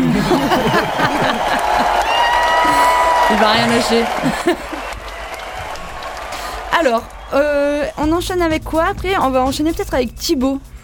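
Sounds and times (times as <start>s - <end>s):
laughter: 0.0s - 5.0s
applause: 0.0s - 8.2s
speech: 3.4s - 4.8s, 6.8s - 10.7s.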